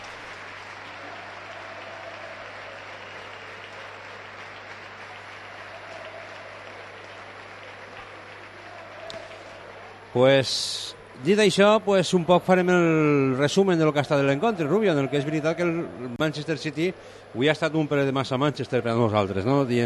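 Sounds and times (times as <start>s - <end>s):
ovation from the audience: 0.0s - 11.4s, 12.9s - 16.9s
speech: 10.2s - 19.8s.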